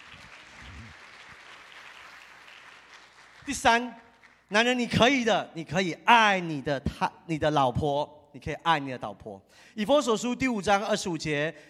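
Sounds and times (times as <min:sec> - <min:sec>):
audience applause: 0:00.0 - 0:04.4
speech: 0:03.5 - 0:11.6.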